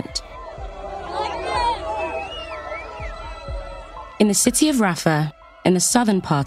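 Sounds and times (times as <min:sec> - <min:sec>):
many voices shouting over one another: 0:00.0 - 0:04.8
high whistle-like tones gliding up and down: 0:00.0 - 0:04.9
crowd cheering and celebrating: 0:00.0 - 0:06.4
speech: 0:04.3 - 0:06.4.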